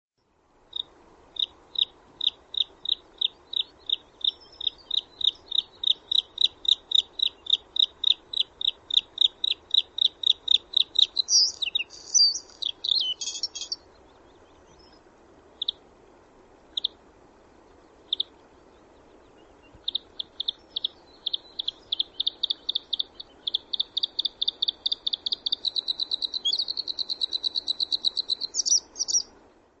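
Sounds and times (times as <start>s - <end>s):
bird short high chirps and twittering: 1.4s - 15.0s, 19.6s - 29.3s.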